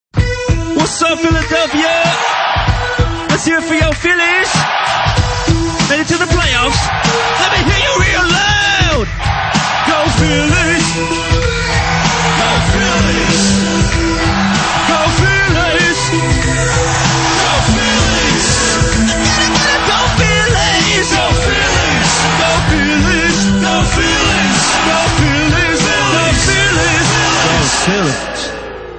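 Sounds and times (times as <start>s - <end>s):
hip hop music: 0.2s - 28.8s.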